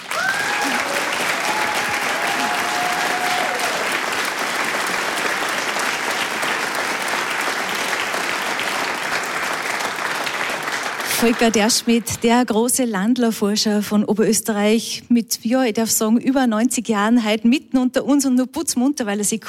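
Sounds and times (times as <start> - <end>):
audience applause: 0.0 - 12.0
cheer or whistle: 0.1 - 3.9
speech: 11.2 - 19.4.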